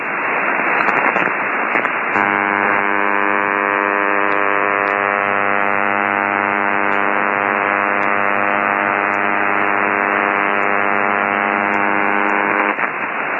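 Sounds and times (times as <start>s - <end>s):
radio receiver hiss: 0.0s - 13.3s
loud unwavering radio hum with stacked harmonics: 2.1s - 12.8s.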